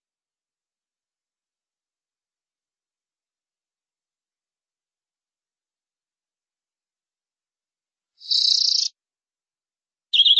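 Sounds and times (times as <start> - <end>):
canary song trill: 8.2 - 9.0, 10.1 - 10.3.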